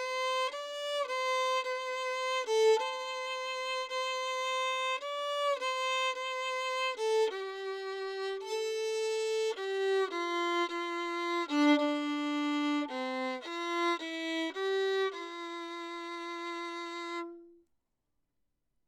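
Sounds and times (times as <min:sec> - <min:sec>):
lyric violin recorded with Little Gem hypercardioid microphone 24cm from F hole: 0:00.0 - 0:17.5.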